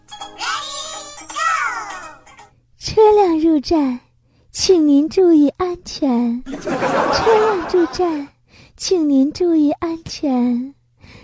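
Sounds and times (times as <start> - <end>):
voice imitating a two-note bus door chime: 0.3 - 2.2
speech: 2.9 - 4.0, 4.6 - 11.2
laughter: 6.5 - 8.2.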